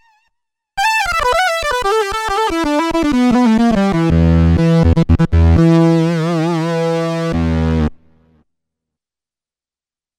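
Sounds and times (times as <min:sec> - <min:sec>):
Korg DW-8000 synthesizer unison lead: 0:00.8 - 0:08.0.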